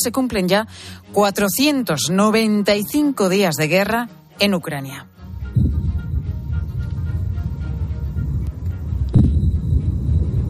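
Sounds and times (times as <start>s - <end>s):
speech: 0.0s - 5.2s
attack drone engine droning: 5.2s - 10.4s.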